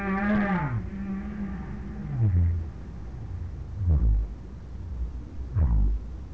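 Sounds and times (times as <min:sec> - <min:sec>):
whale moans: 0:00.0 - 0:04.4
steady low rumble: 0:00.0 - 0:06.3.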